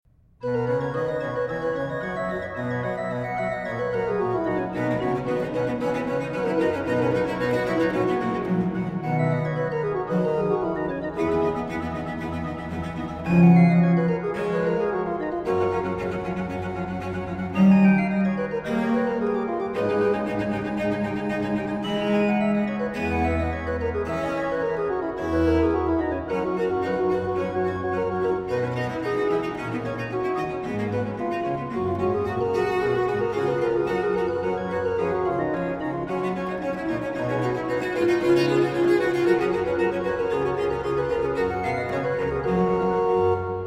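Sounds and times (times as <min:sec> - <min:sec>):
sonata in C major: 0:00.1 - 0:43.6.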